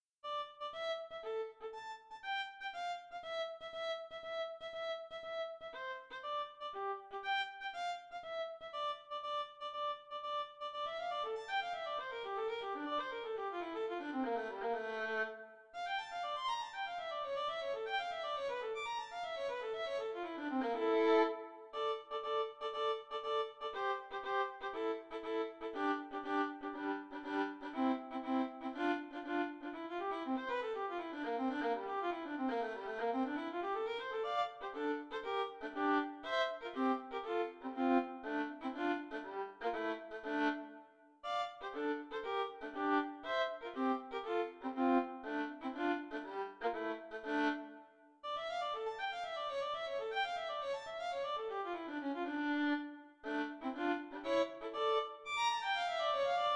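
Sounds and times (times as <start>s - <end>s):
solo violin caprice: 0.3s - 56.5s.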